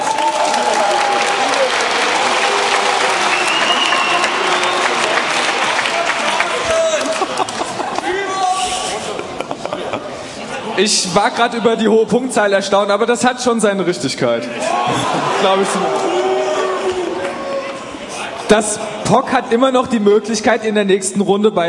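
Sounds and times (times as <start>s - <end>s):
audience clapping at a German quiz show: 0.0s - 8.1s
laughter: 3.7s - 10.8s, 14.6s - 17.4s
speech: 10.8s - 16.1s, 18.5s - 21.6s.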